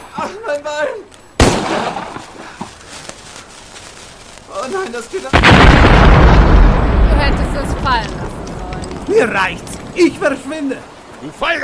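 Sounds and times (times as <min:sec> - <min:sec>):
dynamite explosion: 0:01.4 - 0:02.4, 0:05.3 - 0:10.2
speech: 0:04.8 - 0:08.4, 0:09.1 - 0:11.6.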